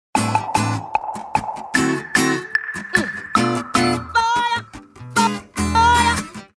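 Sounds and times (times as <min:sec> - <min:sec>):
beautiful guitar riff ringtone cut from a song: 0:00.2 - 0:06.5.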